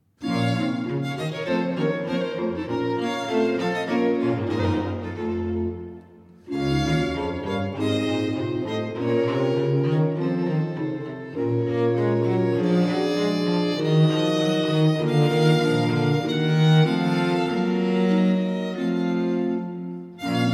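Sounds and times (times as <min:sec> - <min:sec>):
sonata allegro in C minor: 0:00.2 - 0:20.5.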